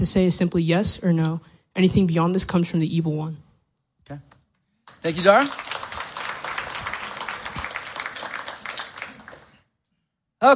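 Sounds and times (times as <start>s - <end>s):
speech: 0.0s - 3.4s, 4.1s - 4.3s, 5.0s - 5.8s
audience clapping: 4.8s - 9.7s.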